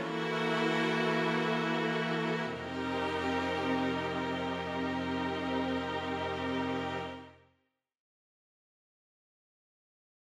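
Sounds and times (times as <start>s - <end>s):
vintage strings: 0.0s - 7.4s.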